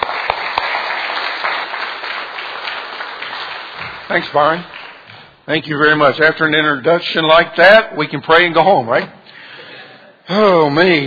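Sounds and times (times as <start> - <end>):
audience applause welcoming speaker: 0.0 - 5.3
speech: 4.1 - 4.7, 5.5 - 9.2, 10.3 - 11.0.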